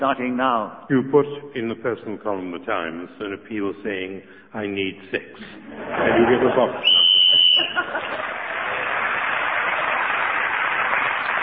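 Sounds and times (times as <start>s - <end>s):
speech: 0.0s - 8.2s
laughter: 5.4s - 9.0s
short shrill whistle blast ending the speaking turn: 6.8s - 7.8s
audience applause: 6.8s - 11.4s.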